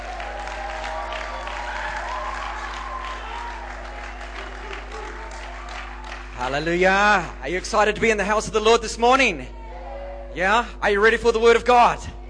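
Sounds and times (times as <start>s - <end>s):
church congregation applauding to welcome the pastor: 0.0s - 7.8s
low constant hum: 0.0s - 12.2s
speech: 6.4s - 9.6s, 10.4s - 12.2s.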